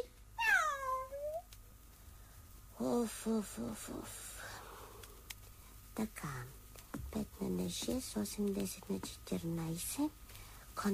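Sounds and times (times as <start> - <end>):
cat meowing: 0.4 - 1.4
speech: 2.8 - 4.3, 6.0 - 10.2, 10.8 - 10.9.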